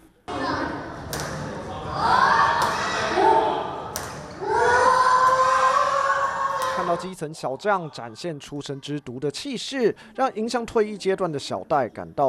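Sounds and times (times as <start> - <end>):
badminton racket smacks: 1.1 - 1.5, 3.9 - 4.3
crowd of children cheering and shouting: 1.7 - 3.8, 4.4 - 7.1
speech: 7.0 - 12.2.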